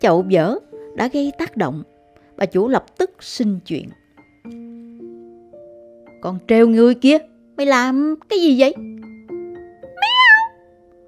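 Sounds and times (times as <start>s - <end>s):
speech: 0.0s - 4.6s, 6.2s - 9.0s
cat meowing loudly: 9.9s - 10.6s.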